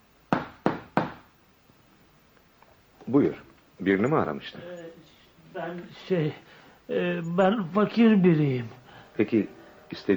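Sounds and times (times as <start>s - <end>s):
knocking on a door: 0.3s - 1.3s
speech: 3.1s - 10.1s.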